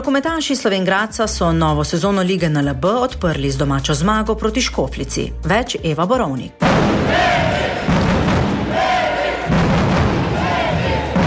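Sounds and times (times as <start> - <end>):
speech: 0.0 - 7.8
thumping beats: 6.6 - 11.2
crowd chanting in unison in a sports hall: 6.8 - 11.2.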